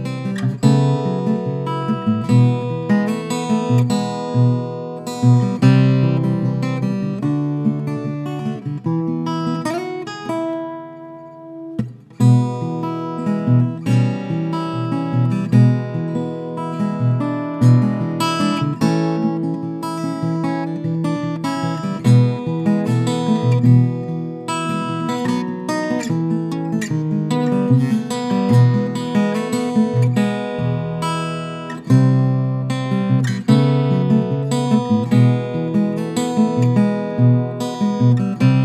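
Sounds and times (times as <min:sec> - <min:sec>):
parlor guitar: 0:00.0 - 0:38.6.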